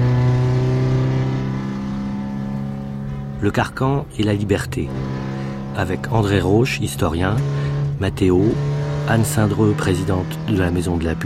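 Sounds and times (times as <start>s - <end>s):
cold car engine revving while driving: 0.0s - 11.2s
speech: 3.4s - 11.2s.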